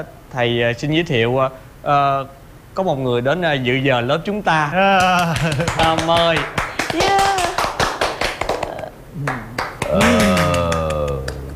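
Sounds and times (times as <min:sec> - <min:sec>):
speech: 0:00.0 - 0:07.3, 0:09.2 - 0:10.6
class of students clapping: 0:05.0 - 0:11.5.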